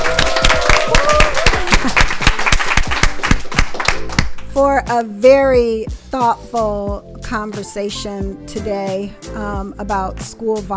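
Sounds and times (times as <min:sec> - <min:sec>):
audience applause: 0:00.0 - 0:04.4
speech: 0:04.6 - 0:10.7.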